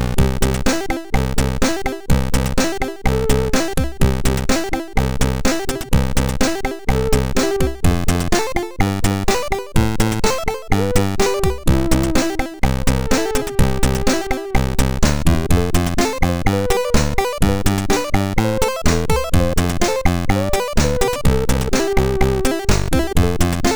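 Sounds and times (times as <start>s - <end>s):
MOS6581R4 SID chip synth: 0.0s - 23.7s.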